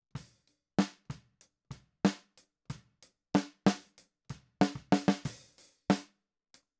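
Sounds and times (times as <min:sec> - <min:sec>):
snare drum: 0:00.8 - 0:01.2, 0:02.1 - 0:02.3, 0:03.4 - 0:04.0, 0:04.6 - 0:06.1.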